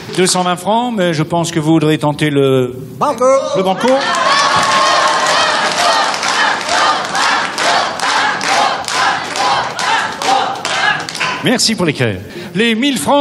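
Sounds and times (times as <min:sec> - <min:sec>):
speech: 0:00.2 - 0:04.3, 0:11.4 - 0:13.1
crowd cheering: 0:03.5 - 0:11.4.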